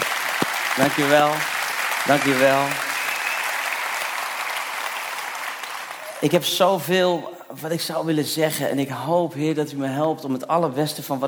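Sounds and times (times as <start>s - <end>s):
audience applause: 0.0s - 7.3s
speech: 0.8s - 2.8s, 6.2s - 11.2s.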